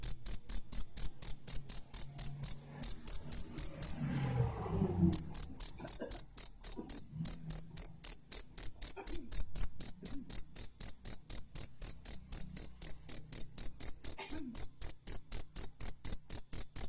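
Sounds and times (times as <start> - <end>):
cricket calling for a mate: 0.0 - 4.2, 5.1 - 16.8.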